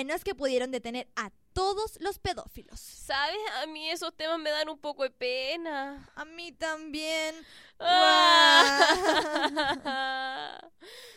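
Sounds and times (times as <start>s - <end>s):
speech: 0.0s - 11.1s
people crying in a studio: 7.8s - 10.6s.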